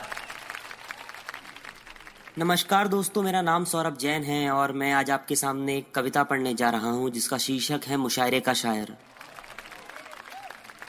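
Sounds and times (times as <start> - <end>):
audience applause: 0.0 - 2.5, 9.0 - 10.8
speech: 2.4 - 9.1.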